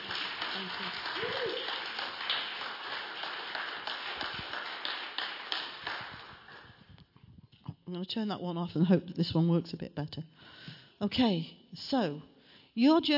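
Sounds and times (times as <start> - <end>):
crowd clapping and applauding: 0.0 - 6.9
speech: 0.6 - 1.6, 7.9 - 13.1.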